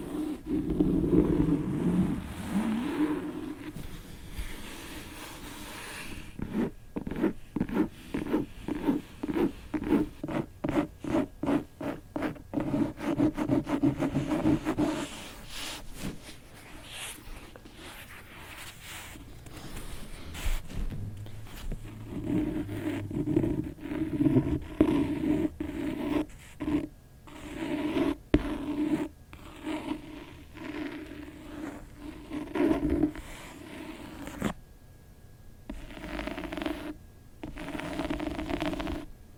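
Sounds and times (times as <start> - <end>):
scratching on a book: 0.0 - 34.6, 35.7 - 39.1.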